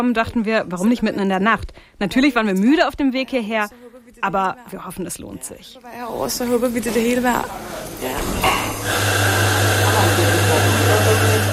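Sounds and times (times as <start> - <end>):
speech: 0.0 - 9.4
espresso machine running in a foyer: 7.5 - 11.5.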